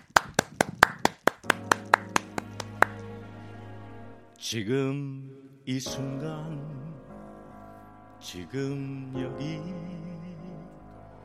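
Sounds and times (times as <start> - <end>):
audience applause: 0.0 - 3.2
speech: 4.4 - 7.0, 8.2 - 10.1.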